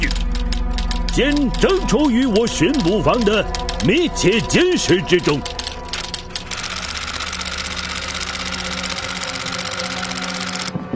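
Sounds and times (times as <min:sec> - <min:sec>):
typewriter typing a document: 0:00.0 - 0:10.7
steady hum: 0:00.0 - 0:10.9
speech: 0:01.2 - 0:05.6.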